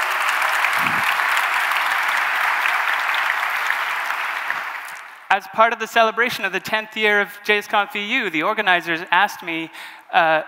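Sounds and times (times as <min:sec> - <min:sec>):
round of applause: 0:00.0 - 0:05.3
speech: 0:05.3 - 0:10.4.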